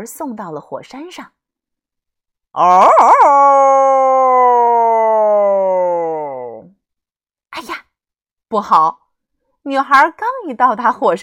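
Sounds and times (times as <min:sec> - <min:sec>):
speech: 0:00.0 - 0:01.4, 0:02.6 - 0:04.7, 0:08.5 - 0:09.0, 0:09.6 - 0:11.2
wolf howling: 0:02.6 - 0:06.7.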